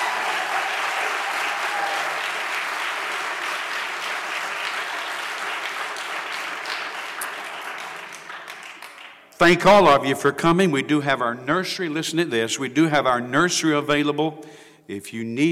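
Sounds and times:
large audience applause: 0:00.0 - 0:09.4
speech: 0:09.4 - 0:15.5.

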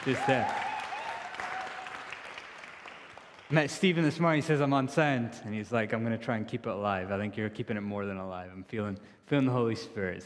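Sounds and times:
speech: 0:00.0 - 0:00.6, 0:03.5 - 0:10.2
audience applauding: 0:00.0 - 0:03.8.

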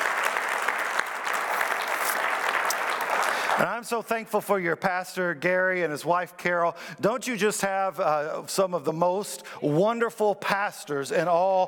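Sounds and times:
audience clapping in praise: 0:00.0 - 0:03.9
speech: 0:03.6 - 0:11.6.

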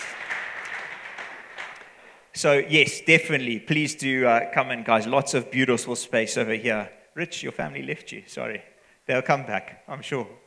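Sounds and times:
round of applause: 0:00.0 - 0:02.2
speech: 0:02.4 - 0:10.4.

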